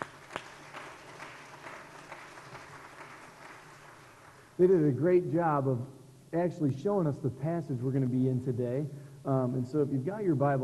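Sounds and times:
round of applause: 0.0 - 4.6
speech: 4.6 - 10.6.

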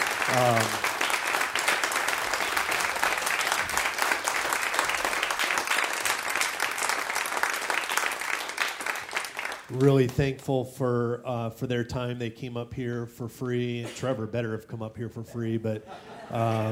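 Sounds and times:
audience applause: 0.0 - 9.9
speech: 0.3 - 0.9, 9.7 - 16.7
laughter: 15.3 - 16.7.

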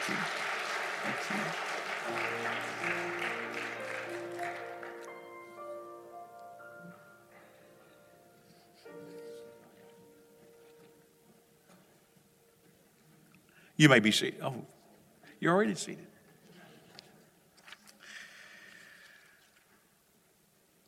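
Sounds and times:
church congregation clapping as a clap offering: 0.0 - 5.8
sustained musical tones: 2.0 - 10.8
speech: 13.8 - 14.8, 15.4 - 16.1.

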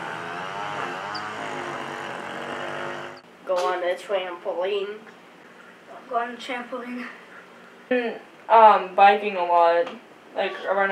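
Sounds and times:
lawnmower engine running: 0.0 - 3.2
speech: 3.5 - 5.2, 6.1 - 7.2, 7.9 - 10.9.

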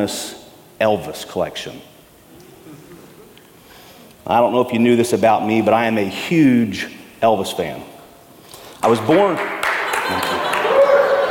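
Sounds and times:
speech: 0.0 - 1.9, 4.2 - 7.9, 8.8 - 9.5, 10.1 - 10.4
laughter: 2.5 - 3.4, 9.6 - 11.2
audience applause: 9.0 - 11.2.

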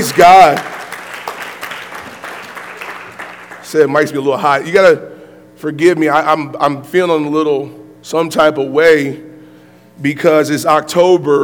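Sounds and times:
speech: 0.0 - 0.7, 3.7 - 9.3, 10.0 - 11.4
crowd clapping in praise: 0.0 - 3.8.

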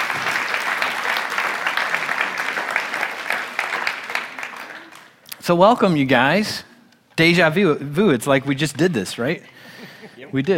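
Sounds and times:
audience applause: 0.0 - 5.2
speech: 5.5 - 9.6, 10.2 - 10.5.

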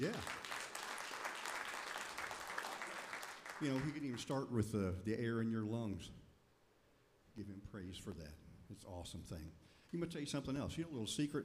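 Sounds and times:
speech: 0.0 - 0.4, 3.6 - 6.2, 7.4 - 11.4
audience applauding: 0.0 - 4.3.

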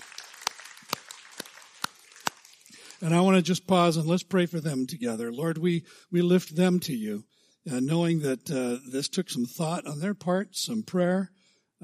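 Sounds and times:
audience applause: 0.0 - 3.4
speech: 3.0 - 11.8.

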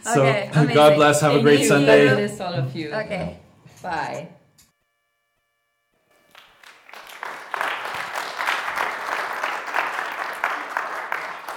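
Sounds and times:
speech: 0.0 - 4.4
audience clapping: 6.2 - 11.5.

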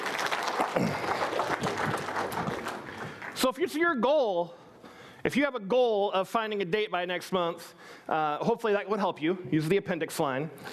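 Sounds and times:
round of applause: 0.0 - 3.6
speech: 3.5 - 4.6, 5.2 - 10.7.

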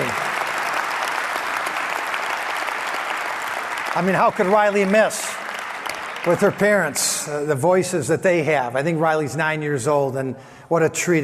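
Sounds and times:
audience applause: 0.0 - 7.5
speech: 4.0 - 5.2, 6.2 - 11.2.

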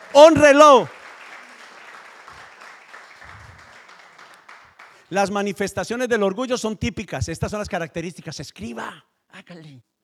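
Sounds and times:
applause: 0.0 - 6.0
speech: 0.2 - 1.0, 5.1 - 9.9.

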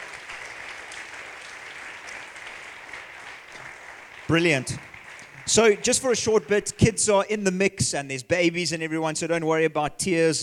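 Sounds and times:
audience applause: 0.0 - 6.2
speech: 4.3 - 4.9, 5.5 - 10.4.

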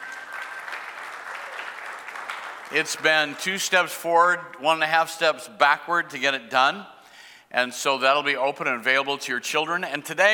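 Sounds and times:
audience clapping: 0.0 - 3.9
speech: 2.7 - 10.3.

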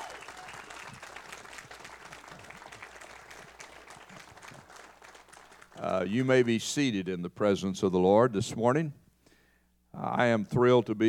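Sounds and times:
crowd applauding: 0.0 - 6.6
speech: 6.0 - 9.0, 10.1 - 11.0.

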